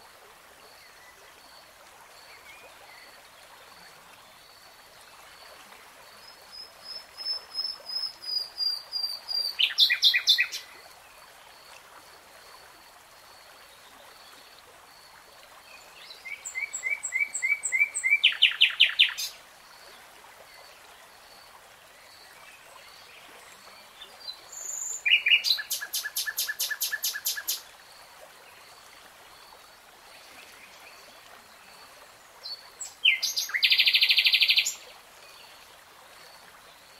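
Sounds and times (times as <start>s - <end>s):
nightingale song: 6.2s - 10.7s, 16.0s - 19.4s, 24.0s - 27.7s, 32.4s - 34.8s.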